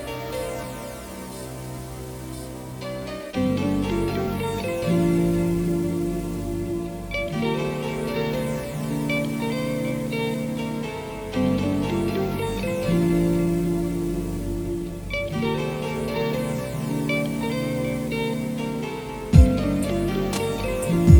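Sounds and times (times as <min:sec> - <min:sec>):
chilling funk music at 432 Hz: 0:00.0 - 0:21.1.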